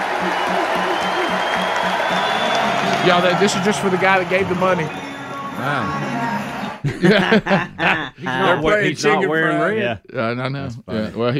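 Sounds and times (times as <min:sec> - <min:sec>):
standing ovation applause and crowd noise: 0:00.0 - 0:05.6
speech: 0:03.0 - 0:05.0, 0:05.6 - 0:11.3
laughter: 0:05.6 - 0:09.5.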